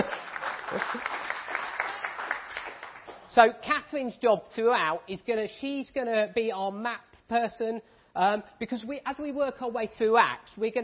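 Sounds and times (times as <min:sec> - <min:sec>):
speech: 0:00.0 - 0:01.2, 0:03.4 - 0:10.8
audience clapping: 0:00.0 - 0:03.3.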